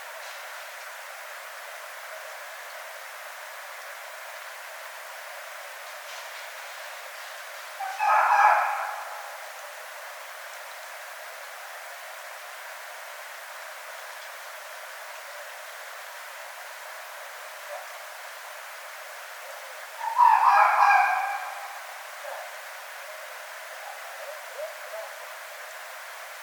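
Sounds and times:
background hiss: 0:00.0 - 0:26.4
red fox giving harsh hoarse bursts: 0:07.8 - 0:09.6, 0:20.0 - 0:25.2.

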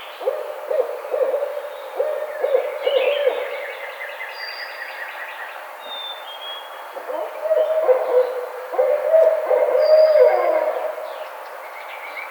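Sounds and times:
barred owl hooting: 0:00.2 - 0:03.7, 0:07.0 - 0:11.0.

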